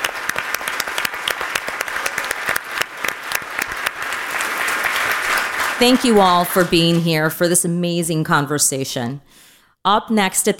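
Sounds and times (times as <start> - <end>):
audience applause: 0.0 - 7.0
speech: 5.8 - 10.5.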